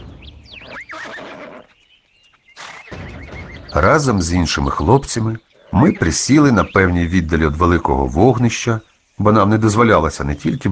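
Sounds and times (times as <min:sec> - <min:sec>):
horse neighing: 0:00.0 - 0:01.8, 0:02.6 - 0:03.8, 0:05.5 - 0:06.8
speech: 0:03.8 - 0:10.7.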